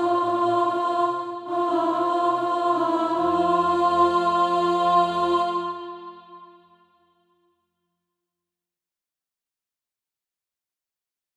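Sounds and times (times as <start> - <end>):
alto voice singing practice music: 0.0 - 6.8.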